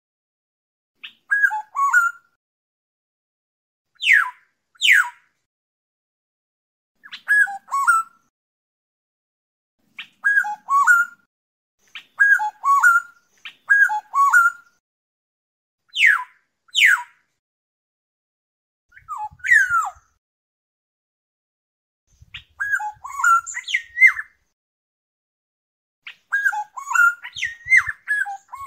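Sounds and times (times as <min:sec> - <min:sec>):
black-naped oriole fluting whistles: 0:01.0 - 0:02.3, 0:04.0 - 0:05.1, 0:07.0 - 0:08.3, 0:10.0 - 0:11.3, 0:12.0 - 0:14.8, 0:15.9 - 0:17.1, 0:18.9 - 0:20.2, 0:22.3 - 0:24.4, 0:26.1 - 0:28.6.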